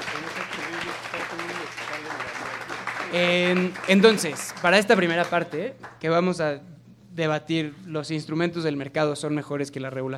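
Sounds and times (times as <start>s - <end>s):
audience applause: 0.0s - 6.0s
speech: 3.1s - 10.1s.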